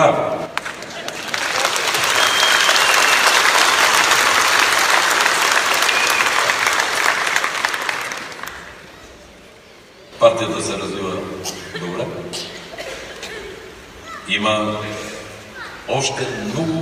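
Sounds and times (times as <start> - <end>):
audience applause: 0.5 - 9.0
speech: 10.3 - 12.5, 14.3 - 15.1, 15.9 - 16.8.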